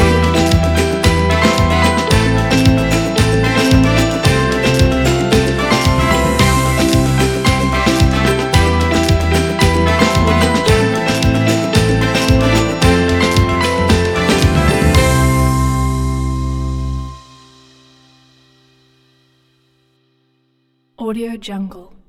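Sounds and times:
fun and happy ukulele music: 0.0s - 17.0s.

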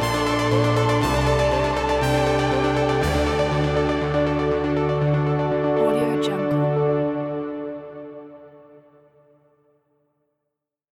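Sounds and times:
inspiring electronic timelapse music: 0.0s - 8.5s.

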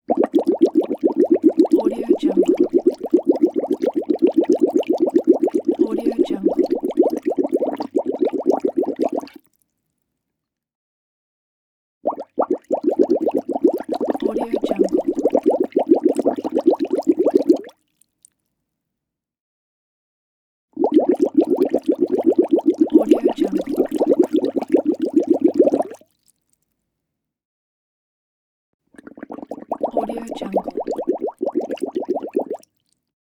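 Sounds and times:
blowing constant bubbles in water: 0.1s - 9.4s, 12.1s - 17.7s, 20.8s - 26.0s, 29.0s - 32.7s.

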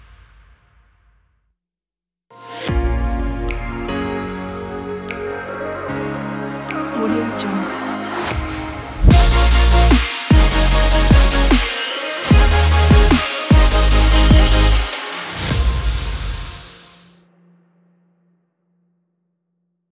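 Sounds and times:
uplifting future bass music: 2.7s - 16.7s.

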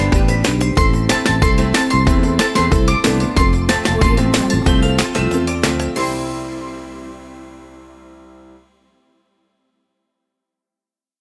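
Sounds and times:
fun upbeat acoustic summer ukulele music: 0.0s - 8.1s.

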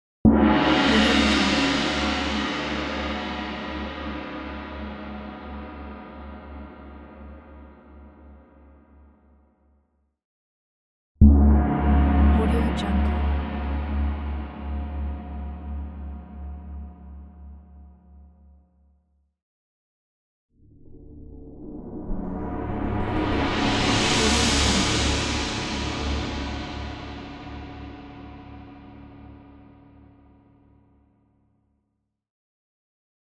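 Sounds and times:
gong: 0.3s - 8.3s, 11.2s - 17.6s, 20.7s - 29.9s.

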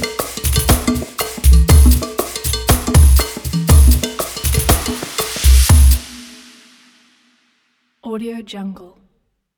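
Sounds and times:
world percussion: 0.0s - 7.3s.

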